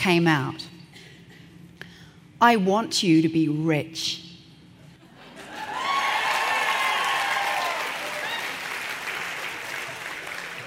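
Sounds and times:
speech: 0.0 - 0.7, 2.4 - 4.2
audience clapping: 5.8 - 10.6.

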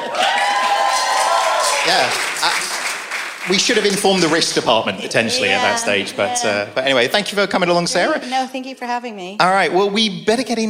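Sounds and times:
audience applause: 0.0 - 6.8
speech: 1.9 - 2.7, 3.4 - 10.6.

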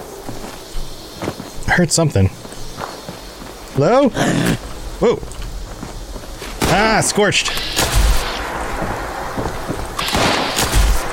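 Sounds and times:
speech: 1.8 - 2.6, 3.8 - 5.4, 6.7 - 7.9
video game gunshots: 6.6 - 11.1.

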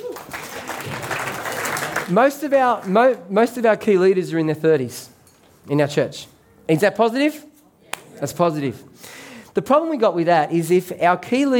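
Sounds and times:
crowd applause: 0.0 - 2.1
speech: 2.1 - 7.5, 8.2 - 11.5.

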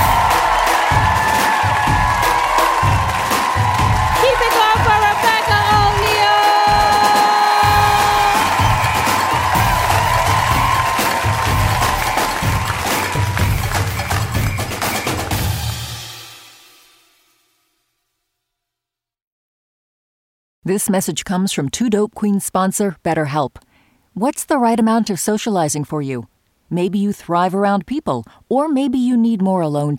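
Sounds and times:
audience applause: 0.0 - 16.1
speech: 20.7 - 29.9.

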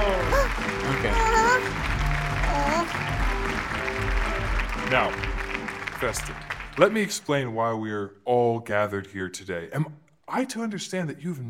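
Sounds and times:
crowd clapping and cheering: 0.0 - 7.3
speech: 4.9 - 5.3, 6.0 - 11.4.

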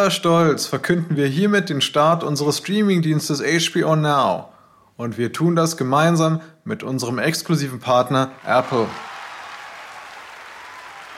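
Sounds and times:
speech: 0.0 - 9.1
large crowd applauding: 8.3 - 11.1.

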